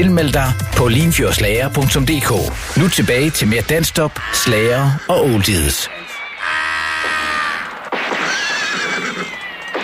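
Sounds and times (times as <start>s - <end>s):
speech: 0.0s - 6.1s
horse neighing: 4.1s - 9.7s.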